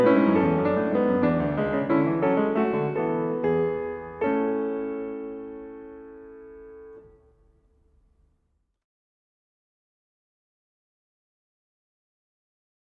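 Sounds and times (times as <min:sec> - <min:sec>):
prelude and fugue: 0:00.0 - 0:07.1.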